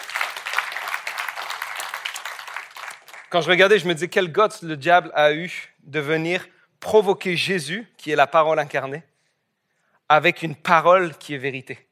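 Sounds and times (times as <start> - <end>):
church congregation clapping during a sermon: 0.0 - 4.1
speech: 3.3 - 9.1, 10.1 - 11.8.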